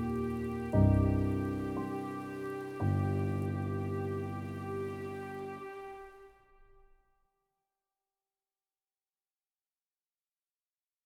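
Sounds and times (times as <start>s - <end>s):
rain at night: 0.0s - 6.4s.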